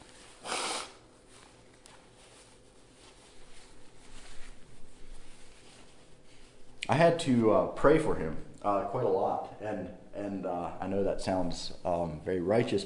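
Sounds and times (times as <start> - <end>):
nose-blowing into a tissue: 0.0 - 1.3
faint movement: 0.0 - 6.8
speech: 6.9 - 12.8.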